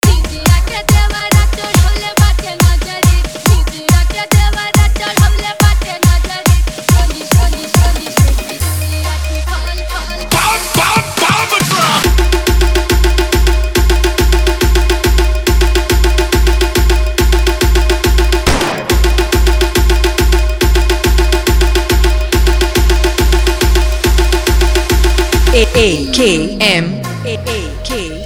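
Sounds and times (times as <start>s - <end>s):
EDM bass remix: 0.0s - 28.2s.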